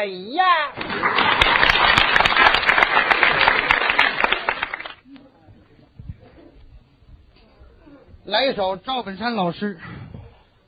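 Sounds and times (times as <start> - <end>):
speech: 0.0 - 1.3, 8.3 - 10.0
audience applause: 0.8 - 5.0.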